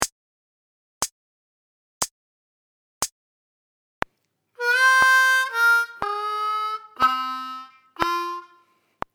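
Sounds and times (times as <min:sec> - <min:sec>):
slow harmonica lick: 0:04.6 - 0:08.9.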